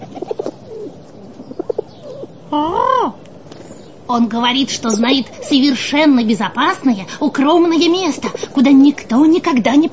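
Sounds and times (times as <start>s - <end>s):
pigeon cooing: 0.0s - 3.9s
speech: 2.5s - 2.8s, 4.1s - 9.9s.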